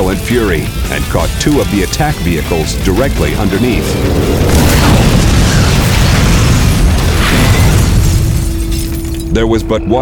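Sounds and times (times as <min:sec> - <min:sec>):
speech: 0:00.1 - 0:05.1, 0:09.3 - 0:09.9
tank shell explosion: 0:03.3 - 0:08.7.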